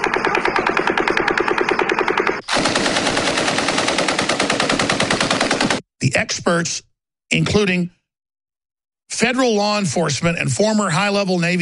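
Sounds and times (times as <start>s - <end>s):
belt fed light machine gun firing: 0.0s - 5.8s
full auto smaller firearm firing: 0.0s - 5.8s
speech: 6.1s - 8.0s, 9.1s - 11.5s.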